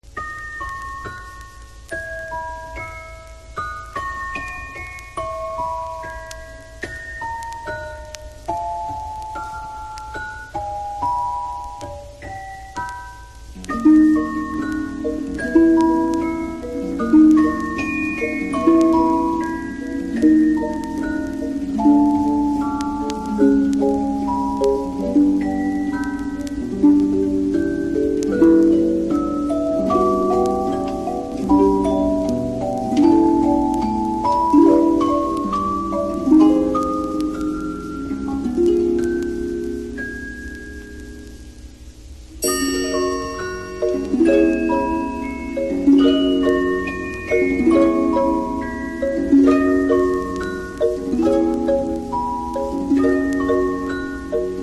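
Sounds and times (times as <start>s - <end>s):
percussion for a lullaby: 0.0s - 41.3s, 42.3s - 54.6s.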